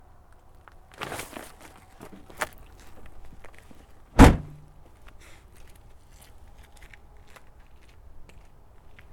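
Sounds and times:
bag unloaded from car boot: 0.9 - 3.0.

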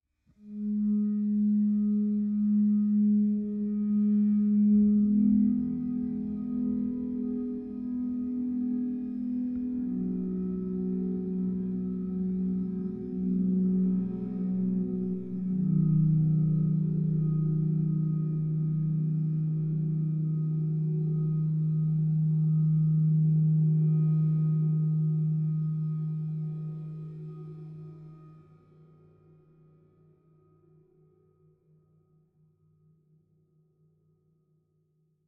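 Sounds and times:
ambient synth pad: 0.4 - 31.7.

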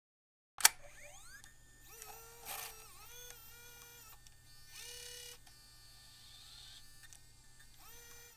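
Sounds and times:
Mini DV camera: 0.6 - 8.3.

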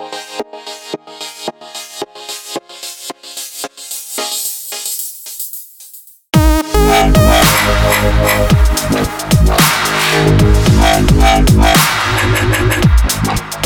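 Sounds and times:
dubstep loop: 2.9 - 13.6.

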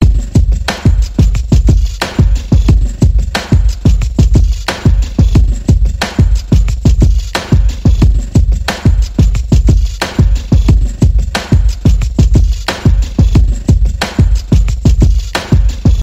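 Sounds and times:
drum beat: 0.0 - 16.0.

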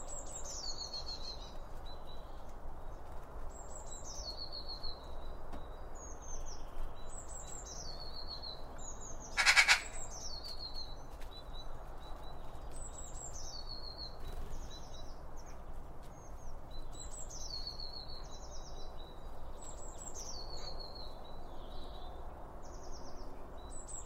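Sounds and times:
small birds chirping: 0.0 - 24.0.

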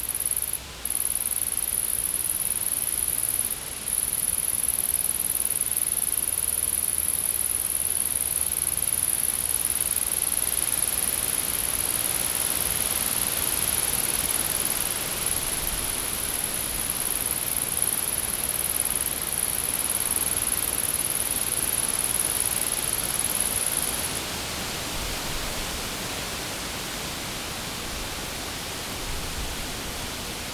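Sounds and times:
insect trilling: 0.0 - 11.3, 11.9 - 24.1
soft hiss: 0.0 - 30.5.

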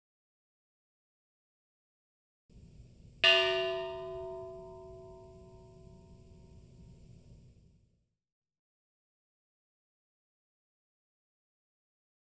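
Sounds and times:
church bell: 2.6 - 7.5.

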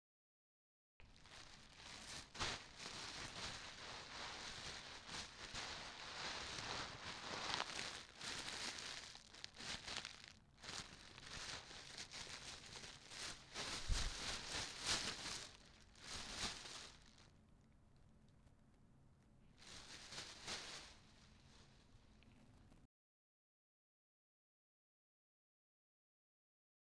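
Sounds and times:
plastic bag: 1.0 - 18.4, 19.5 - 22.8.

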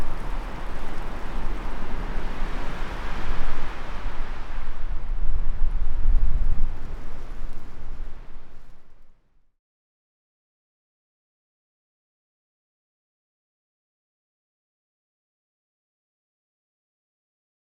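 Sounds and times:
wind in the trees: 0.0 - 9.5.

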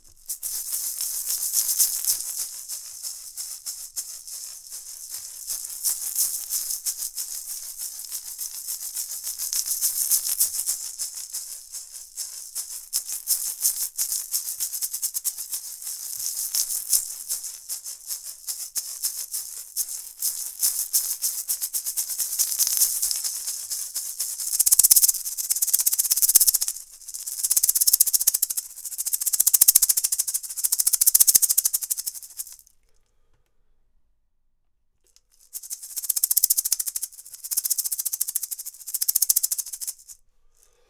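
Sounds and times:
shaker: 0.0 - 32.7, 35.1 - 40.8.

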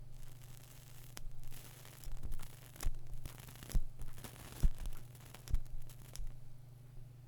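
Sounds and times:
lighting a cigarette: 0.1 - 6.4.

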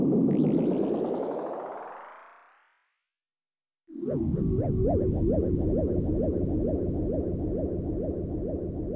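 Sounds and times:
sci-fi rising and falling tones: 0.1 - 3.0, 3.9 - 8.9.

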